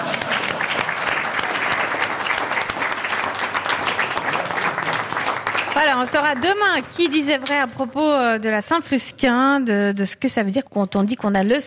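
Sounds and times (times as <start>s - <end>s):
audience applause: 0.0s - 7.6s
speech: 5.8s - 11.6s.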